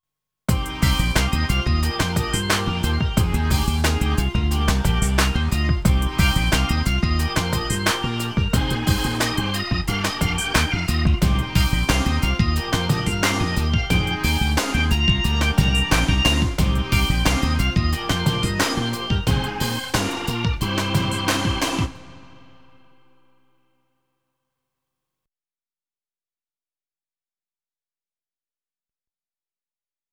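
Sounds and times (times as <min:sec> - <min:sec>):
Hammond B3 organ: 0:00.5 - 0:23.4.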